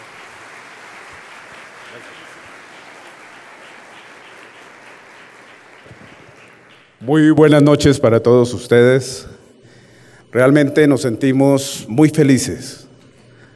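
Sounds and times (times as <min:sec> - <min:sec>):
audience applause: 0:00.0 - 0:07.0
speech: 0:01.9 - 0:02.4, 0:07.0 - 0:09.3, 0:10.3 - 0:12.8.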